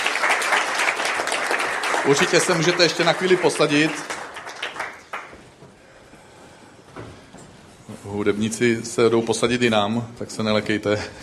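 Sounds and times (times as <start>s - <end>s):
crowd applauding: 0.0s - 5.6s
speech: 2.0s - 4.1s, 8.2s - 11.2s.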